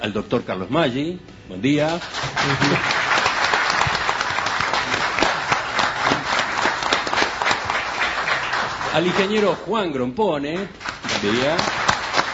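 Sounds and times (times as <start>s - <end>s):
speech: 0.0s - 3.0s, 9.0s - 11.8s
audience applauding: 2.0s - 9.7s, 10.8s - 12.3s.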